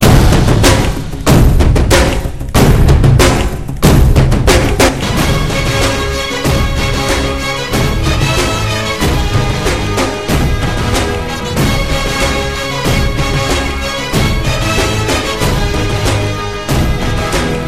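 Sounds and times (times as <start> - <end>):
drums: 0.0 - 17.6.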